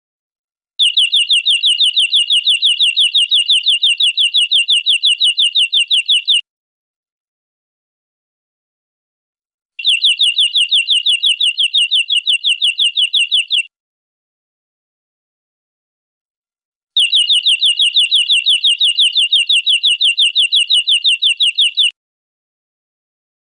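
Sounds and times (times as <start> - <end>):
European greenfinch buzzy trill: 0.8 - 6.4, 9.8 - 13.6, 17.0 - 21.9.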